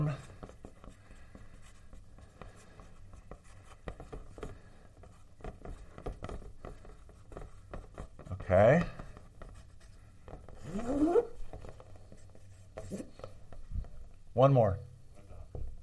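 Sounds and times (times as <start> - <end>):
handwriting on a page, pen on paper: 0.2 - 8.4, 9.0 - 13.3
speech: 8.5 - 9.0, 14.4 - 14.9.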